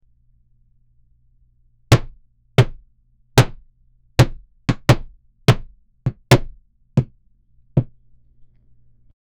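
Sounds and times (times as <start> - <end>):
giant hammer pounding: 1.9 - 2.8, 3.4 - 3.6, 4.2 - 7.1.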